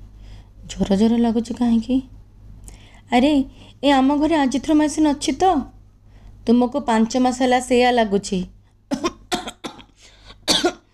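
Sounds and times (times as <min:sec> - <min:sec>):
speech: 0:00.7 - 0:02.2, 0:03.1 - 0:05.8, 0:06.4 - 0:09.0
feverish person coughing harshly: 0:08.9 - 0:10.9.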